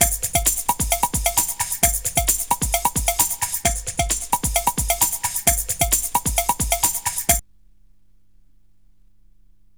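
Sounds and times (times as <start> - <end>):
drum: 0.0 - 7.4.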